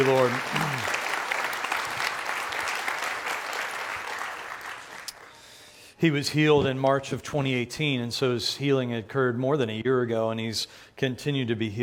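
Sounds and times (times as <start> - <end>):
speech: 0.0 - 1.0, 6.0 - 11.8
audience applause: 0.0 - 5.4.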